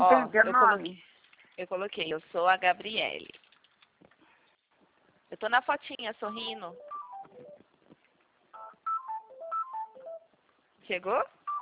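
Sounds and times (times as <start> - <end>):
speech: 0.4 - 3.4, 5.3 - 7.5, 10.9 - 11.4
telephone ringtone of short electronic beeps for an incoming call: 6.3 - 7.6, 8.6 - 10.3.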